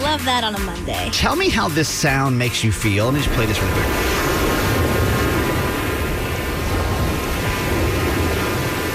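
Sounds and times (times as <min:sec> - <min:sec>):
speech: 0:00.1 - 0:04.3
small waves crashing on shore: 0:03.3 - 0:08.9.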